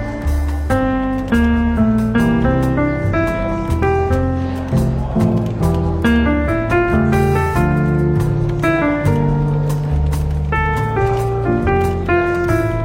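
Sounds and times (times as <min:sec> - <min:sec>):
soft easygoing jazz in a bookshop café: 0:00.0 - 0:12.8
faint murmuring voices: 0:03.7 - 0:12.4.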